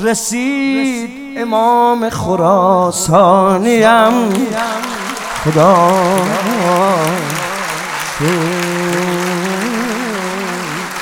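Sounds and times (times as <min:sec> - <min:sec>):
speech: 0:00.0 - 0:07.4, 0:08.2 - 0:08.7
loud ornamented sung voice: 0:00.0 - 0:11.0
audience clapping for Imam Reza at a religious gathering: 0:03.8 - 0:11.0.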